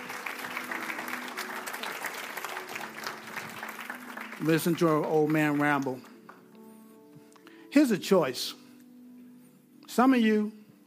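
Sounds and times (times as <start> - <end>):
church audience applause: 0.0 - 6.1
speech: 4.4 - 6.1, 7.8 - 8.6, 10.0 - 10.8.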